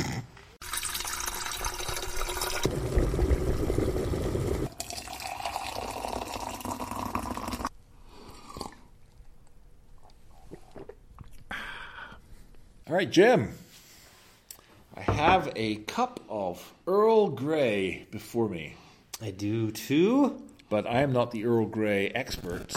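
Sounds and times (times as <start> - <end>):
water filling a kettle: 0.6 - 7.7
speech: 12.9 - 13.6, 15.3 - 22.7.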